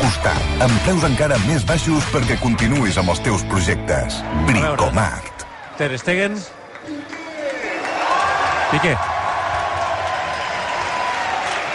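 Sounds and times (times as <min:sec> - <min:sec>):
speech: 0:00.2 - 0:07.0, 0:08.7 - 0:09.1
football stadium crowd applauding as the lineup is announced: 0:04.4 - 0:11.7.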